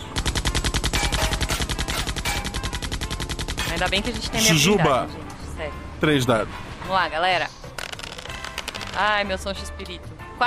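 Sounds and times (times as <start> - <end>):
machine gun fire: 0.0 - 4.1
speech: 3.8 - 7.6, 9.0 - 10.4.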